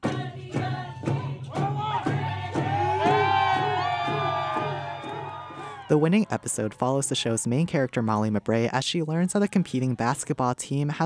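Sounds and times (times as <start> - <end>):
drumbeat at Juneau airport welcome: 0.0 - 6.7
crowd at Juneau airport singing and chanting to welcome an Emmy winner: 0.0 - 8.1
speech: 5.9 - 11.0.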